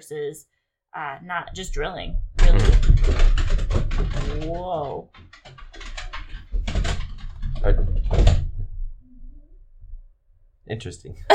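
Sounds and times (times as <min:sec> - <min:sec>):
speech: 0:00.0 - 0:03.3, 0:04.2 - 0:05.2, 0:07.6 - 0:08.3, 0:10.7 - 0:11.3
dogs running laps on floor upstairs: 0:02.4 - 0:08.6.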